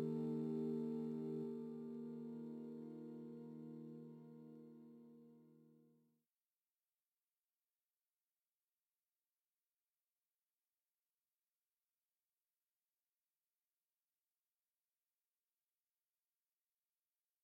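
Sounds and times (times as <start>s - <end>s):
sine wave tones: 0.0s - 6.0s.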